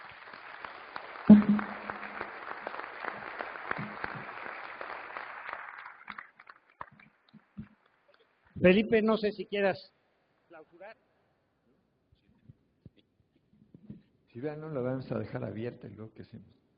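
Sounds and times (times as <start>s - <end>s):
audience applause: 0.0s - 6.9s
speech: 8.6s - 10.0s, 14.4s - 16.6s.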